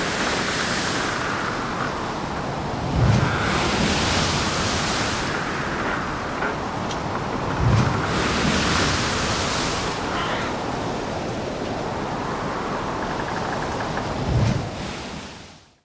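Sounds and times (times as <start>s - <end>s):
ship in heavy sea: 0.0s - 15.8s.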